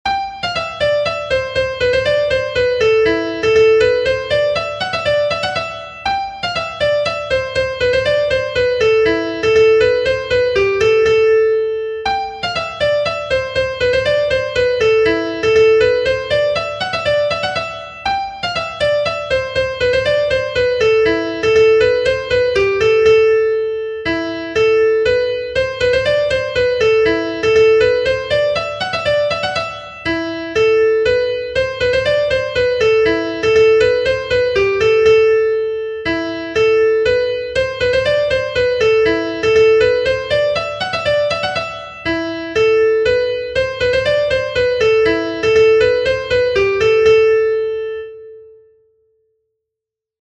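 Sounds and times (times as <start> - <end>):
polska dance tune: 0.2 - 48.0.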